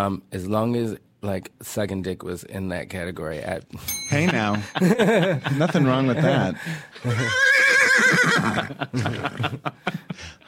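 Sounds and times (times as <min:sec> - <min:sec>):
speech: 0:00.0 - 0:10.4
laughter: 0:04.1 - 0:10.4
excited horse whinnying: 0:07.0 - 0:08.7.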